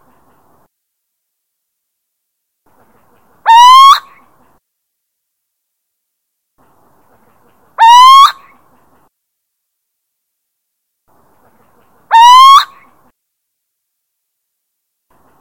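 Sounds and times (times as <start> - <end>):
little owl territorial hooting: 3.4 - 4.2, 7.8 - 8.5, 12.1 - 12.8.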